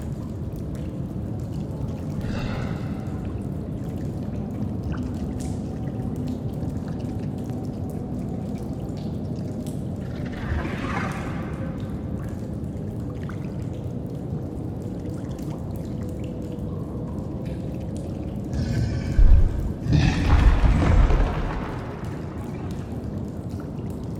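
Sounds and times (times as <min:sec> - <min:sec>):
cave ambience: 0:00.0 - 0:24.1.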